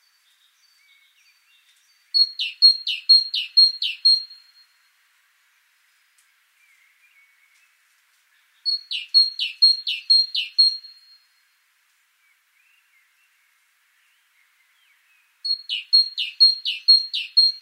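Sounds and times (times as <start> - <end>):
great tit two-note phrases: 0.7 - 4.6, 8.4 - 11.3, 14.4 - 17.6.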